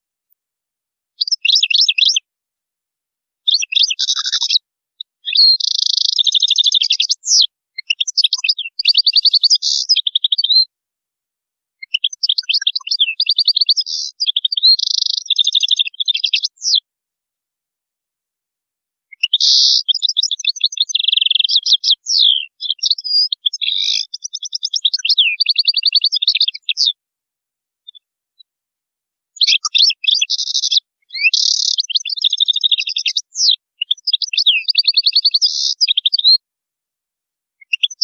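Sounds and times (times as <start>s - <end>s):
European goldfinch song: 1.2s - 2.2s, 3.5s - 4.6s, 5.3s - 10.7s, 11.9s - 16.8s, 19.2s - 27.0s, 29.4s - 36.4s, 37.7s - 38.0s.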